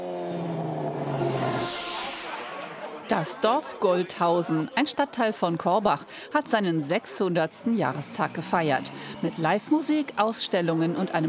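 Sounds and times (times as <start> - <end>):
loud car exhaust revving: 0.0 - 2.4
speech: 3.1 - 11.2.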